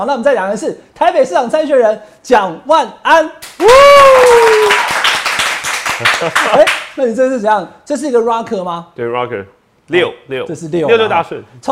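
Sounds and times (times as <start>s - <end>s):
speech: 0.0s - 4.9s, 6.0s - 11.7s
hand clapping: 3.4s - 7.0s.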